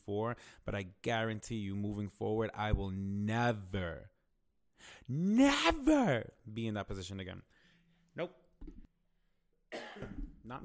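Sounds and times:
speech: 0.1s - 4.1s, 4.8s - 7.6s, 8.2s - 8.8s, 10.0s - 10.6s
coughing: 9.7s - 10.4s.

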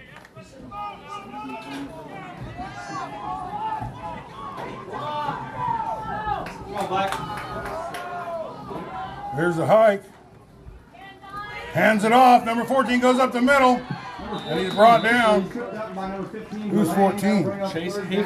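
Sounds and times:
crowd chatter in the stands: 0.0s - 18.2s
people shouting: 0.7s - 9.4s, 13.1s - 15.4s
speech: 9.4s - 10.1s, 11.7s - 18.2s.

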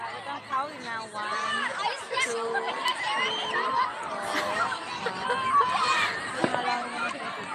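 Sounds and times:
crowd noise heard over a phone: 0.0s - 7.5s
laughter: 1.8s - 7.5s.

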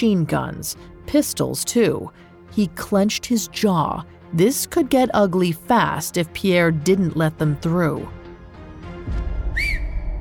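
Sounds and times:
speech: 0.0s - 8.2s
person whistling: 9.5s - 10.1s.

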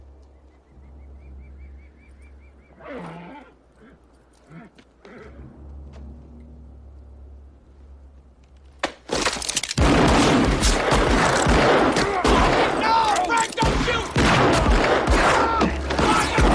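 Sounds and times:
gunfire from the OK Corral gunfight scene in the film Wyatt Earp: 9.8s - 13.0s, 13.6s - 16.5s.

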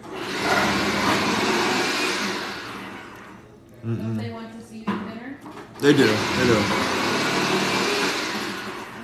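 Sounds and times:
machine whirring while slicing potatoes: 0.0s - 3.0s, 5.8s - 8.9s
speech: 5.8s - 6.8s.

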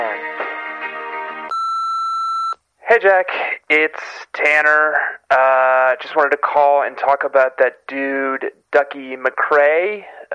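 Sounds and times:
voicemail beep: 1.5s - 2.6s
speech: 2.9s - 10.3s.

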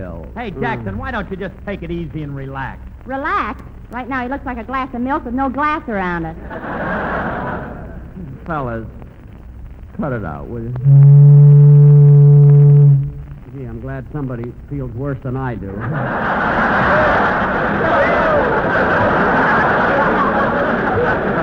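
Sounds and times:
speech: 0.0s - 7.4s, 8.2s - 9.0s, 10.0s - 11.5s, 13.9s - 19.3s
laughter: 6.4s - 8.1s, 15.7s - 21.4s
boat whistle: 10.8s - 13.3s.

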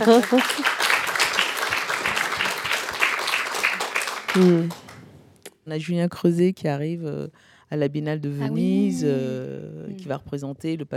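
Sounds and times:
speech: 0.0s - 0.9s, 4.4s - 4.8s, 5.6s - 10.9s
crowd applauding: 0.0s - 5.0s.

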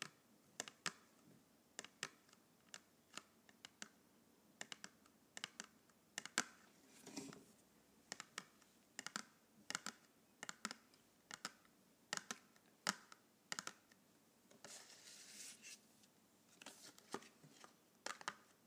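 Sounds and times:
colored pencils clicking and tapping: 0.0s - 1.1s, 1.8s - 4.0s, 4.6s - 6.6s, 8.1s - 14.8s, 17.6s - 18.6s
quiet low hiss: 0.2s - 18.6s.

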